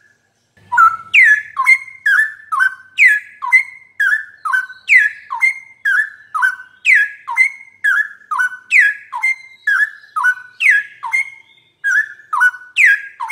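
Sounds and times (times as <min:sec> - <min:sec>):
bird singing whistled notes: 0:00.0 - 0:13.3.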